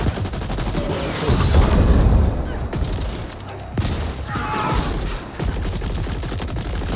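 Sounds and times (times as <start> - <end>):
gunfire and weapon blasts in a video game: 0.0 - 6.9.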